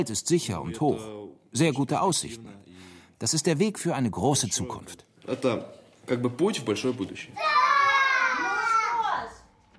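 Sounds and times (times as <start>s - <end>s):
speech: 0.0s - 2.6s, 3.2s - 7.7s
children's voices and happy shouting outdoors: 7.3s - 9.6s.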